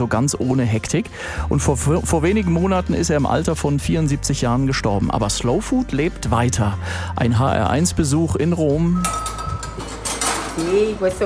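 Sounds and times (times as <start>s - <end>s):
speech: 0.0s - 9.4s, 10.6s - 11.2s
pans and cutlery clattering in a restaurant kitchen in Tarquinia: 9.0s - 11.2s.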